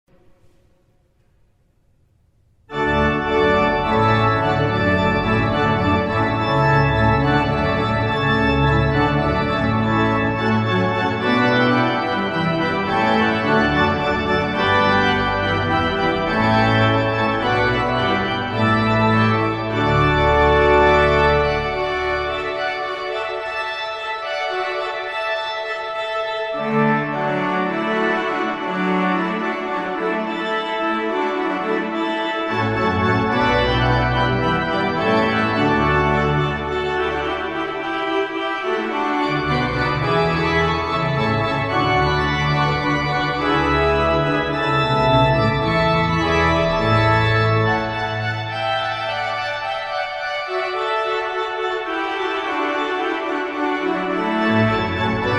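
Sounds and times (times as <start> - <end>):
hornpipe tune: 2.7 - 55.3.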